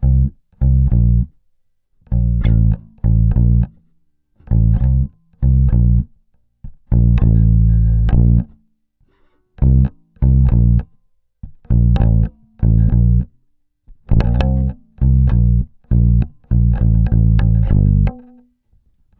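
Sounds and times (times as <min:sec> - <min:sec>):
bass grooves: 0:00.0 - 0:01.4, 0:02.1 - 0:03.8, 0:04.4 - 0:08.6, 0:09.6 - 0:18.4.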